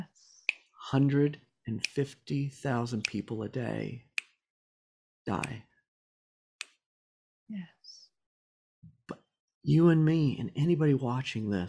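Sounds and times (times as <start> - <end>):
speech: 0.9 - 4.1, 5.3 - 5.7, 7.5 - 8.0, 9.1 - 11.6
finger snap: 1.8 - 2.1, 2.9 - 3.3, 5.3 - 5.6, 6.6 - 6.8.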